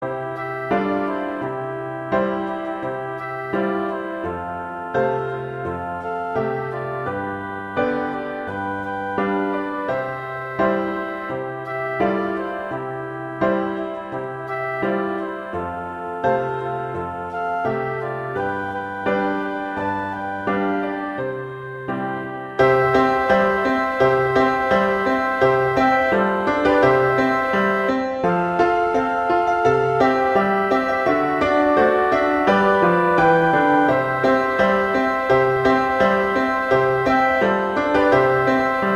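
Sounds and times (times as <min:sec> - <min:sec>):
flute: 0:00.0 - 0:38.9
piano: 0:00.0 - 0:38.9.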